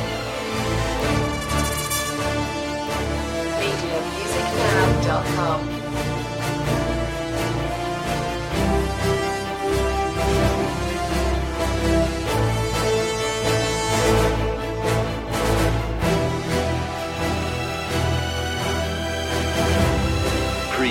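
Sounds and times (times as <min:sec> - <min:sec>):
brass: 0:00.0 - 0:20.9
strings: 0:00.0 - 0:20.9.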